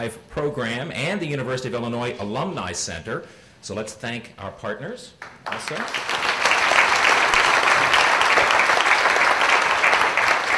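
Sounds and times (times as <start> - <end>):
speech: 0.0 - 6.3
audience applause: 5.4 - 10.5.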